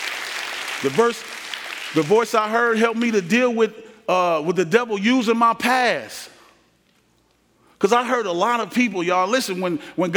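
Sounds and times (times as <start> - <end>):
audience hand clapping: 0.0 - 3.3
speech: 0.8 - 6.4, 7.8 - 10.1.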